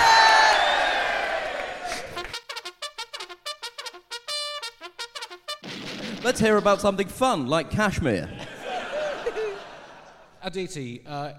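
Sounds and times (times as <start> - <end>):
audience cheering: 0.0 - 2.3
speech: 6.2 - 8.4, 10.4 - 11.3
laughter: 8.3 - 10.4.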